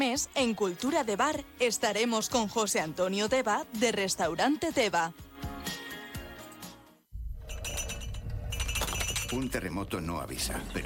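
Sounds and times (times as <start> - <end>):
speech: 0.1 - 5.3, 9.3 - 10.8
beer glasses clinking in a toast: 7.4 - 10.0.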